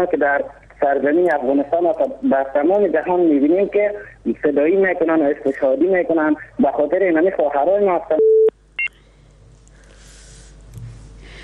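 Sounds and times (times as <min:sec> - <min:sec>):
speech: 0:00.0 - 0:08.3
low steady hum: 0:00.0 - 0:11.4
electronic beep on a phone line as a caller's call drops: 0:08.2 - 0:08.9.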